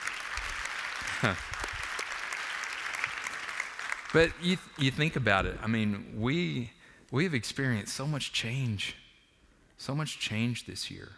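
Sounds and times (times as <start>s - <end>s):
audience clapping: 0.0s - 5.3s
speech: 1.2s - 1.5s, 4.1s - 9.0s, 9.8s - 11.1s.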